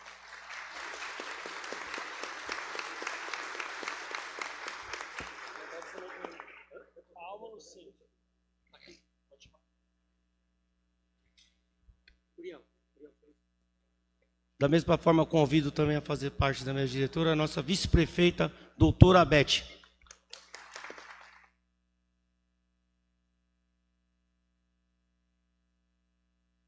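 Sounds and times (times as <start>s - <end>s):
audience applause: 0.0s - 6.8s, 20.2s - 21.5s
speech: 14.6s - 19.8s.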